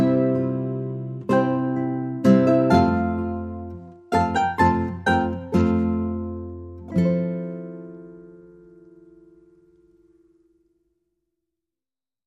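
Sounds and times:
waltz: 0.0s - 9.5s.

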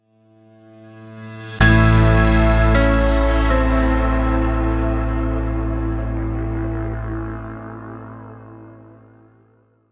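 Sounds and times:
strange ritual music sting: 1.5s - 9.8s.

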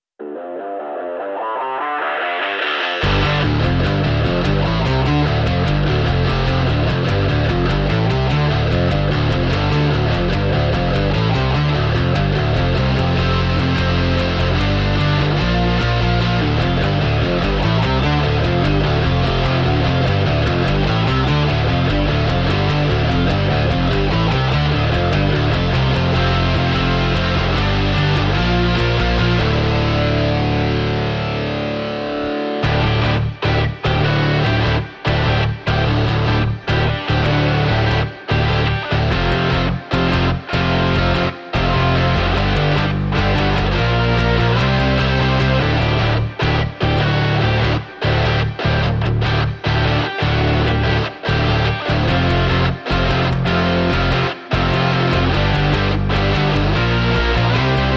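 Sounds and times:
guitars playing: 0.2s - 57.9s.

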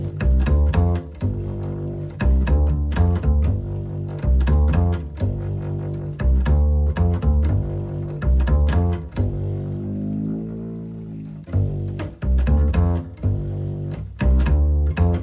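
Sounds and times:
bass line only: 0.0s - 15.2s.

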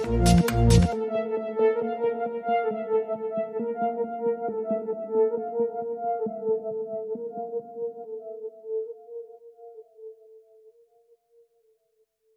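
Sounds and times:
ambient music: 0.0s - 7.3s.

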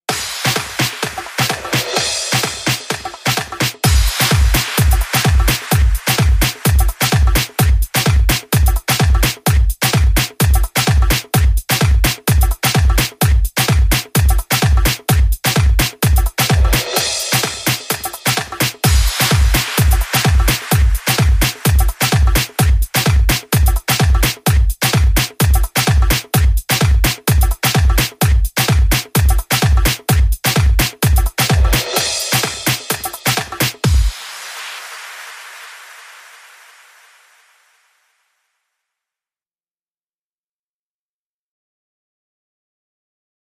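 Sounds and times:
beat: 0.1s - 37.7s.

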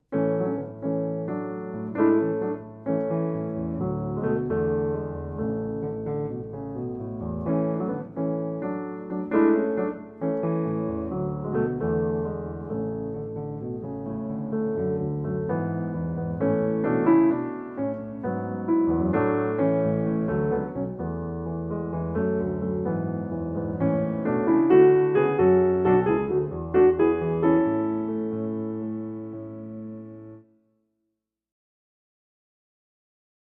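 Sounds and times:
solo piano: 0.0s - 30.6s.

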